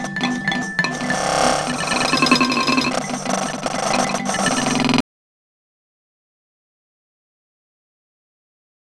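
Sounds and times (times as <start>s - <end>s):
home made twangle: 0.0s - 5.0s.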